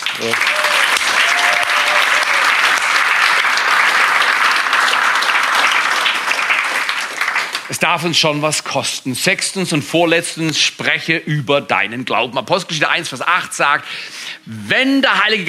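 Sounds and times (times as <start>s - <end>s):
audience applauding the band: 0.0s - 8.2s
speech: 0.2s - 0.6s, 7.7s - 15.4s.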